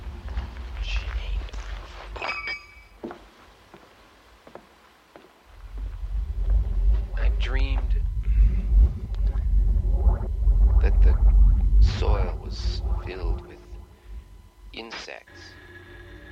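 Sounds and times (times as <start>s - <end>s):
footsteps walking along a sidewalk: 0.0s - 2.2s, 3.0s - 8.0s
steady low rumble: 0.0s - 2.2s, 5.5s - 16.3s
high tonal chirps: 5.6s - 16.3s.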